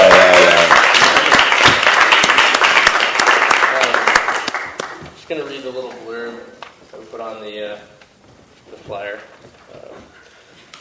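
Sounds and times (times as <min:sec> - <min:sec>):
audience applause: 0:00.0 - 0:05.1
speech: 0:07.4 - 0:08.0, 0:08.9 - 0:09.8.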